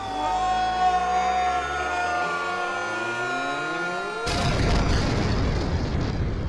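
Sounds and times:
rising whine of layered tones: 0:00.0 - 0:05.5
explosion blowing up the wrestling ring: 0:04.3 - 0:06.4.

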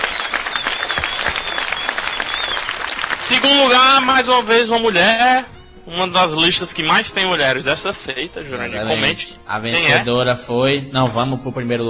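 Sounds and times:
applause: 0:00.0 - 0:04.6
speech: 0:03.3 - 0:11.8.

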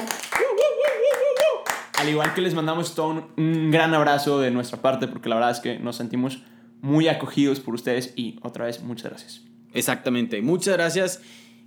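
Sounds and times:
hand clapping: 0:00.0 - 0:02.6
speech: 0:02.0 - 0:11.6.

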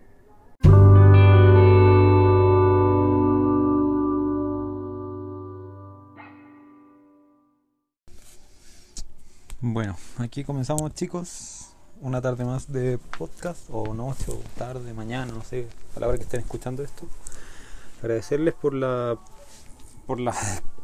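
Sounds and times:
short musical intro: 0:00.6 - 0:07.4
speech: 0:09.8 - 0:19.4, 0:20.1 - 0:20.8.

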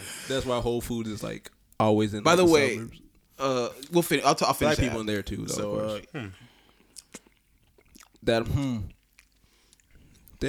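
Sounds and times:
speech: 0:00.3 - 0:06.5, 0:08.2 - 0:09.0
chewing a cheesecake that tastes like key lime pie: 0:06.7 - 0:08.2, 0:08.9 - 0:10.4.

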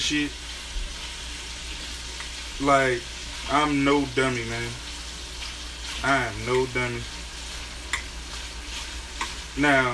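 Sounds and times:
speech: 0:00.0 - 0:00.5, 0:02.6 - 0:04.8, 0:06.0 - 0:07.2, 0:09.6 - 0:09.9
food sizzling while cooking brunch: 0:00.0 - 0:09.9.

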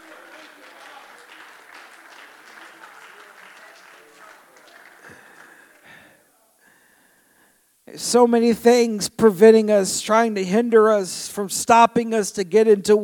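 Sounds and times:
audience clapping: 0:00.0 - 0:06.2
speech: 0:07.9 - 0:13.0.

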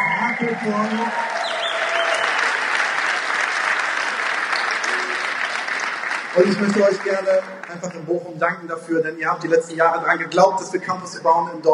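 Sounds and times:
crowd cheering in Dortmund: 0:00.0 - 0:08.0
speech: 0:00.4 - 0:01.4, 0:06.4 - 0:11.7.

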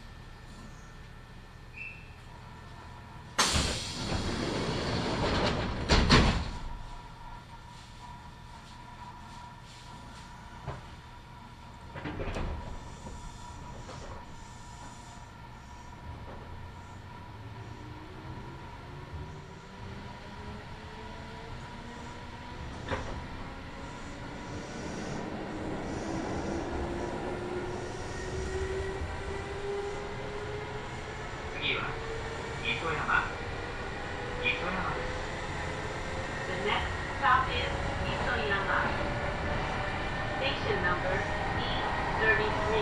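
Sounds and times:
Kintetsu Nagoya Line local train running: 0:02.7 - 0:42.8
local train clanks and thumps: 0:03.4 - 0:07.0, 0:10.6 - 0:11.0, 0:11.8 - 0:15.0, 0:16.0 - 0:16.7, 0:22.6 - 0:23.4.

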